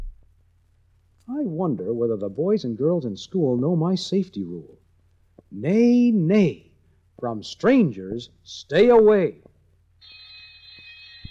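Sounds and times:
soft low thumps: 0:00.0 - 0:00.4
speech: 0:01.3 - 0:04.8, 0:05.5 - 0:09.5
school bell ringing: 0:10.0 - 0:11.2.

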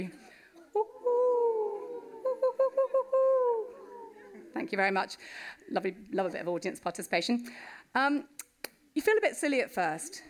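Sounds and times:
speech: 0:00.0 - 0:00.2, 0:04.6 - 0:08.4, 0:09.0 - 0:10.2
audience imitating owl calls: 0:00.6 - 0:05.2.

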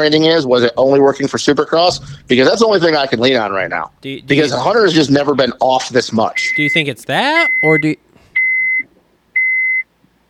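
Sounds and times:
speech: 0:00.0 - 0:08.0
large truck reversing beeps: 0:06.4 - 0:06.8, 0:07.4 - 0:09.9.

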